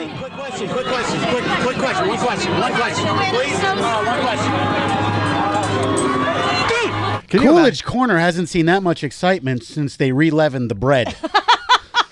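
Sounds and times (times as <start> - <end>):
people screaming in a crowd: 0.1 - 7.4
speech: 0.2 - 11.4
laughter: 11.0 - 12.1.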